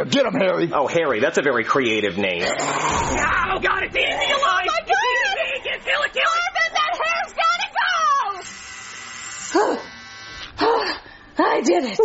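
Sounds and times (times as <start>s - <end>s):
speech: 0.0s - 6.3s, 11.4s - 12.0s
laughter: 3.5s - 7.2s
electric shaver shaving a head: 8.2s - 10.8s.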